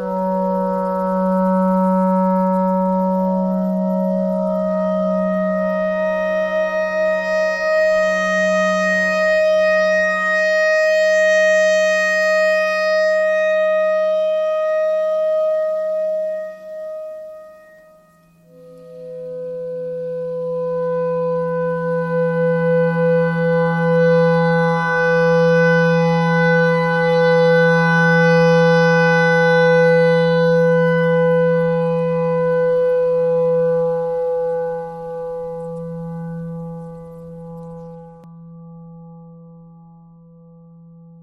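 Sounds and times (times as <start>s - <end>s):
E clarinet notes: 0.0s - 38.3s.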